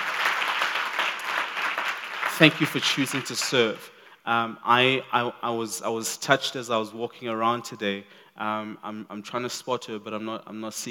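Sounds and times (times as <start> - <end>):
crowd applause: 0.0 - 3.6
speech: 2.4 - 10.8.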